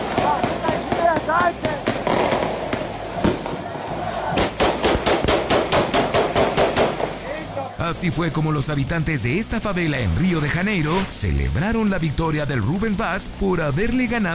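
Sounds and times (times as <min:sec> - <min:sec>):
celebratory gunfire in a favela: 0:00.0 - 0:03.6, 0:04.3 - 0:07.2
speech: 0:07.9 - 0:14.3.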